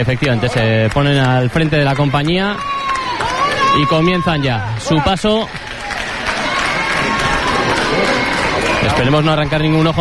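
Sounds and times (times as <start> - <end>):
speech: 0.0 - 2.9, 3.7 - 5.6, 8.8 - 10.0
crowd applauding: 0.0 - 10.0
crowd shouting: 2.3 - 10.0.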